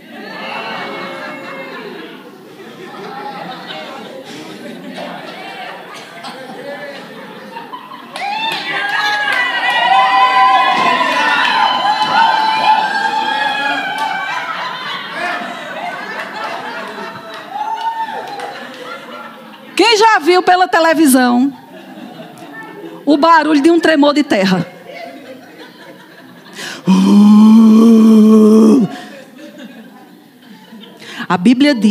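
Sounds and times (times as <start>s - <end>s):
crowd cheering and shouting joyfully: 0.0s - 2.2s, 8.1s - 18.7s
laughter: 0.0s - 9.3s, 10.8s - 20.1s, 21.4s - 31.1s
speech: 20.4s - 21.6s, 23.1s - 24.7s, 31.3s - 31.8s.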